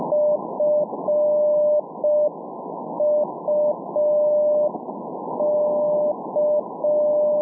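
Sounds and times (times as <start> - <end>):
Morse code CW signal beeps on the 43 meter band: 0.1 - 2.3, 3.0 - 4.7, 5.4 - 7.4.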